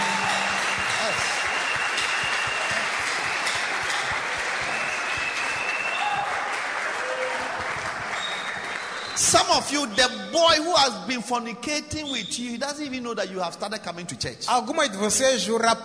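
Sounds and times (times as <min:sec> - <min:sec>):
church congregation applauding in praise: 0:00.0 - 0:10.0
speech: 0:09.3 - 0:15.8.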